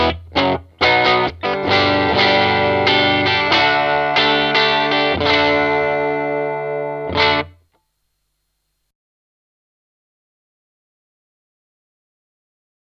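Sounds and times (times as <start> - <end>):
20W clean tube amp tone: 0.0 - 7.7.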